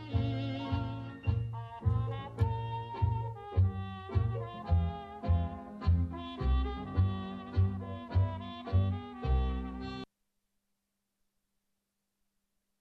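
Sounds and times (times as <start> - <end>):
Ukrainian tango music: 0.0 - 10.1.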